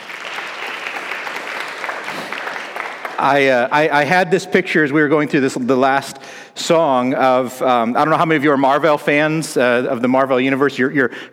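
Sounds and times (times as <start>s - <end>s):
audience clapping for worship team: 0.0s - 4.0s
speech: 3.2s - 11.3s.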